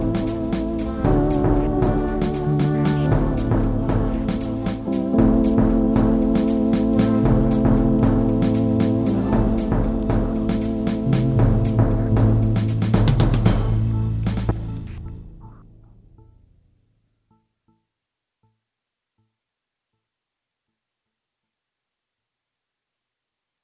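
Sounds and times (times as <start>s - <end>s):
instrumental music: 0.0s - 18.6s.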